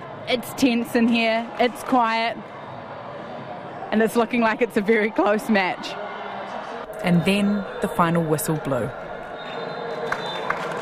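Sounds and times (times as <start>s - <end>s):
speech: 0.3s - 2.5s, 3.9s - 6.0s, 7.0s - 9.0s
crowd slow clapping after a 1-1 draw: 9.4s - 10.8s.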